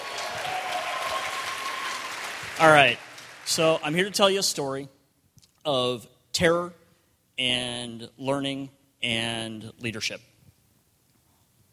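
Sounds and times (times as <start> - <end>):
audience applauding at a management and leadership speaker event: 0.0 - 4.2
speech: 2.6 - 5.0, 5.6 - 6.8, 7.4 - 10.3.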